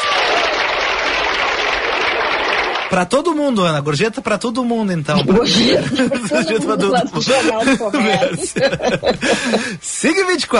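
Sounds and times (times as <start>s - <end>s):
applause: 0.0s - 3.2s
speech: 2.9s - 10.5s
laughter: 5.1s - 9.8s.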